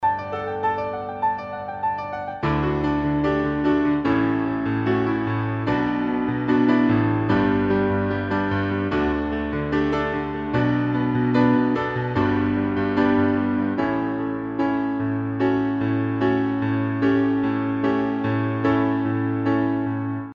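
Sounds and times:
piano melodies: 0.0s - 20.3s.

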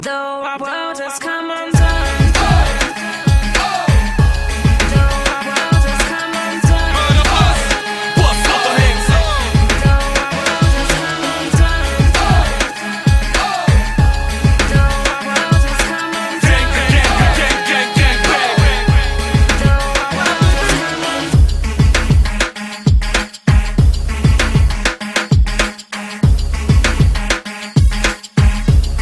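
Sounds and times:
gangsta beat: 0.0s - 29.0s.

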